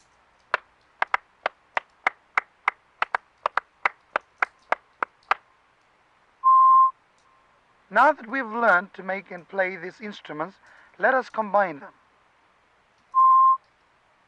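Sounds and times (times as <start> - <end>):
Fijian rhythmic hand clapping: 0.0 - 5.4
steady beep tone: 6.4 - 6.9, 13.2 - 13.6
speech: 8.0 - 12.0.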